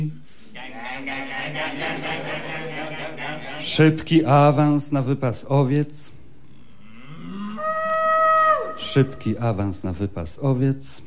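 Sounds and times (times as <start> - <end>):
speech: 0.0 - 0.2, 1.0 - 2.5, 3.6 - 6.1, 8.8 - 11.0
laughter: 0.6 - 4.1
cattle mooing: 6.8 - 8.3.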